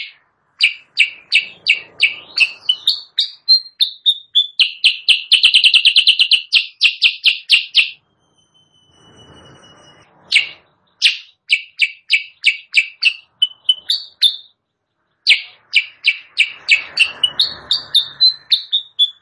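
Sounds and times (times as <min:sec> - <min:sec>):
sooty-headed bulbul chirping, training song for caged birds: 0:00.0 - 0:08.9, 0:10.2 - 0:19.2.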